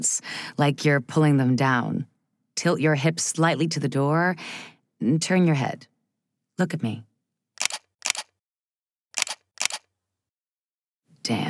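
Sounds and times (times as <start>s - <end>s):
speech: 0.0s - 5.9s, 6.6s - 7.1s, 11.2s - 11.4s
camera shutter clicks during photo shoot: 7.6s - 8.4s, 9.2s - 9.9s.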